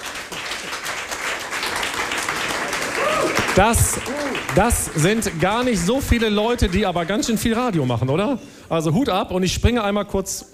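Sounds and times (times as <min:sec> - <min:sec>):
applause: 0:00.0 - 0:08.4
speech: 0:03.6 - 0:10.5.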